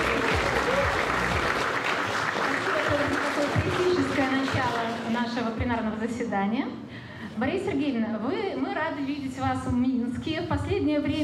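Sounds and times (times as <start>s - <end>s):
audience applause: 0.0s - 5.0s
speech: 5.5s - 11.2s.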